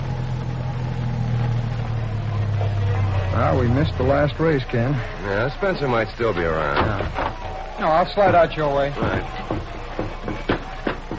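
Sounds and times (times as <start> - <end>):
car engine rumbling pulling in to park: 0.0 - 11.1
speech: 3.4 - 9.6.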